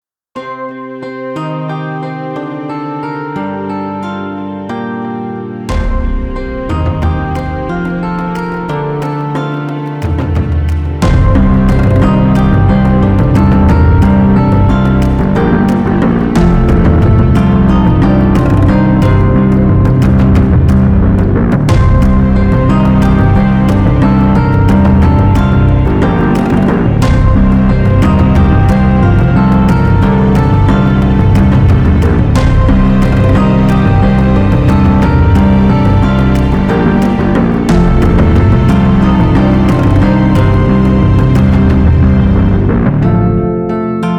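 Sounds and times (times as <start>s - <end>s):
zither: 0.4s - 44.1s.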